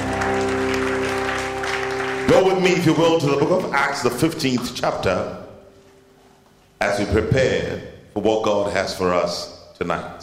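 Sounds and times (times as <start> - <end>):
audience clapping: 0.0 - 4.8
organ-like chord humming: 0.0 - 9.6
speech: 2.3 - 5.4, 6.8 - 10.2.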